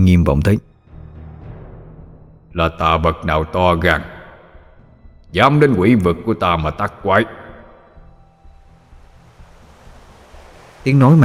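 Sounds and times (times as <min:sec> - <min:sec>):
speech: 0:00.0 - 0:00.7, 0:02.6 - 0:04.1, 0:05.3 - 0:07.4, 0:10.8 - 0:11.2
surging waves on a lake: 0:08.9 - 0:11.2.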